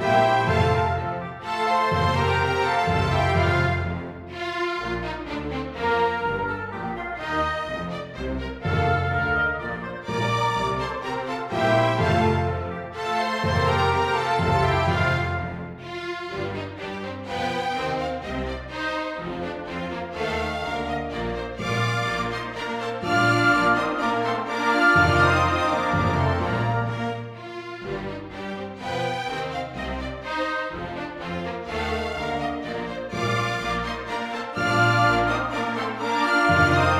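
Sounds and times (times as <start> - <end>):
orchestra playing a minuet in E-flat major: 0.0 - 36.9.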